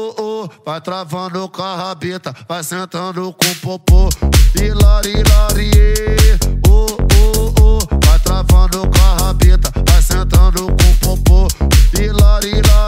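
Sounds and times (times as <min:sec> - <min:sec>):
mega funk music: 0:03.4 - 0:12.8.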